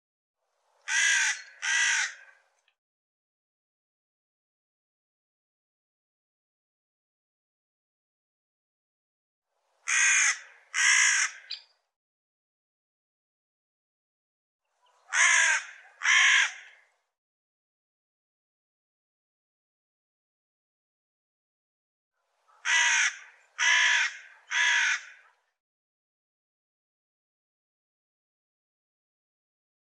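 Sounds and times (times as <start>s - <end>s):
bird cawing: 0.9s - 2.4s, 9.9s - 11.8s, 14.8s - 17.0s, 22.5s - 25.5s.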